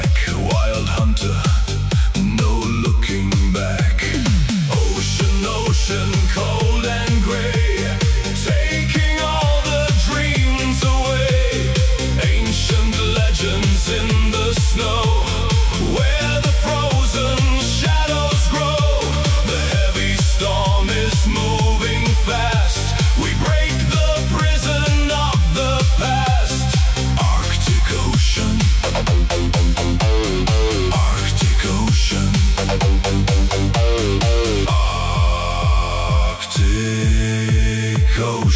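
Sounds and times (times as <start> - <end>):
modern disco style synth pop music: 0.0 - 38.5.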